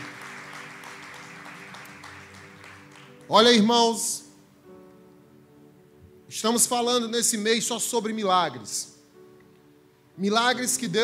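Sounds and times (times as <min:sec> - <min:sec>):
audience applauding: 0:00.0 - 0:03.5
speech: 0:03.3 - 0:04.2, 0:06.4 - 0:09.0, 0:10.2 - 0:11.0.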